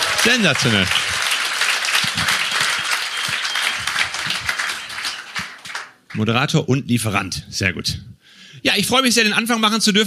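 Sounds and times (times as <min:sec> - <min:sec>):
audience applause: 0:00.0 - 0:06.3
speech: 0:00.2 - 0:01.1, 0:06.2 - 0:10.0.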